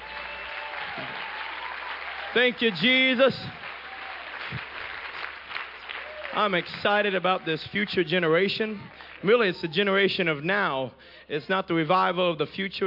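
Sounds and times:
audience clapping hands: 0:00.0 - 0:10.0
speech: 0:02.3 - 0:03.6, 0:06.4 - 0:12.8.

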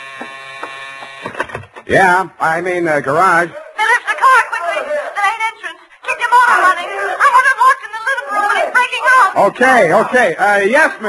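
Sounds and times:
electric buzzer droning: 0:00.0 - 0:01.4
speech: 0:01.9 - 0:03.6, 0:09.4 - 0:11.0
laughter: 0:03.5 - 0:09.4.

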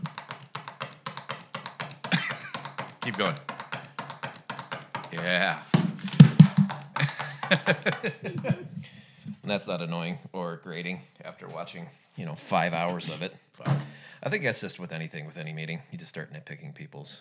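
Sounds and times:
person imitating a pen being clicked on a table: 0:00.0 - 0:05.3
laughter: 0:02.1 - 0:02.6, 0:07.0 - 0:08.8
speech: 0:03.1 - 0:03.5, 0:05.1 - 0:05.7, 0:07.5 - 0:08.8, 0:09.5 - 0:17.1.

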